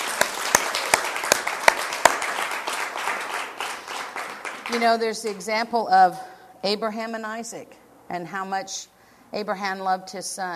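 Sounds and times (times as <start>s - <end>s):
audience applause for fathers: 0.0s - 5.0s
speech: 4.7s - 10.5s.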